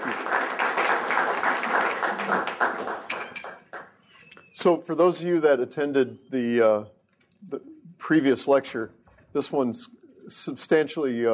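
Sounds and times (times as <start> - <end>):
audience applause welcoming a guest lecturer at a talk on 3D integration: 0.0 - 4.0
speech: 4.6 - 11.3.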